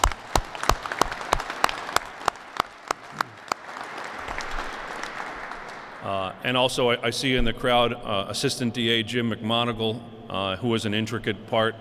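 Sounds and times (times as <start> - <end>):
audience applause: 0.0 - 6.1
speech: 6.1 - 11.7.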